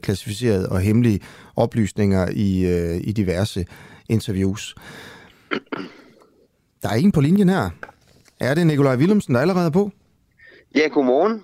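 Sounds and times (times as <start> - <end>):
speech: 0.0 - 6.0, 6.8 - 10.0, 10.7 - 11.4
throat clearing: 5.5 - 6.3.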